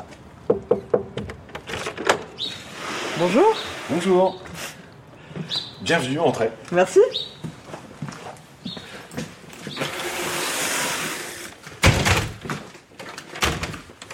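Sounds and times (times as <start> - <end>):
broken stiff door scraping and rattling as it is forced shut: 1.3 - 4.4, 9.7 - 14.1
speech: 3.2 - 4.4, 5.9 - 7.3.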